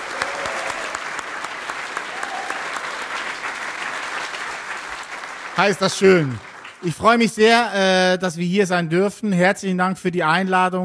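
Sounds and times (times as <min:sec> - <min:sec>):
audience clapping: 0:00.0 - 0:07.4
speech: 0:05.6 - 0:10.8.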